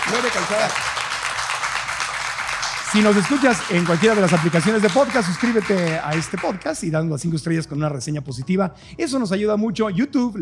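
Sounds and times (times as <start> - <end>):
audience applause: 0.0 - 6.8
speech: 0.1 - 1.0, 2.9 - 10.3.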